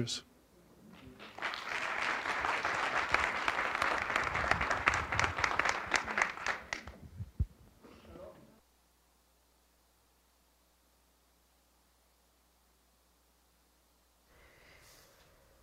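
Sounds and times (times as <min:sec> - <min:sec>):
audience round of applause: 0:00.9 - 0:07.0.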